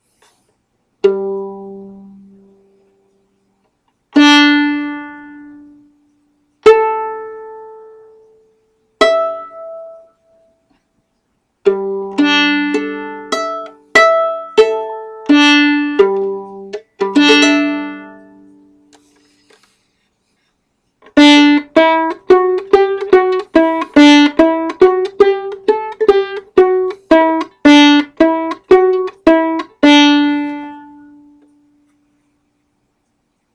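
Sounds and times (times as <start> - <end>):
fiddle playing on the D string: 1.0 - 2.8, 4.2 - 6.0, 6.6 - 8.2, 9.0 - 10.1, 11.6 - 19.1, 21.0 - 31.6.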